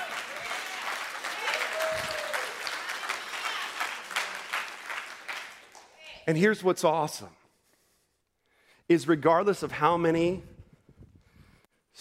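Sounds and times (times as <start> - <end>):
people whooping: 0.0 - 4.1
audience applause: 0.0 - 6.0
speech: 6.3 - 7.4, 8.9 - 10.5.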